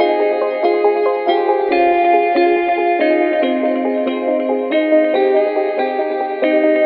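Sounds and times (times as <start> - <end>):
guitar loops: 0.0 - 6.8.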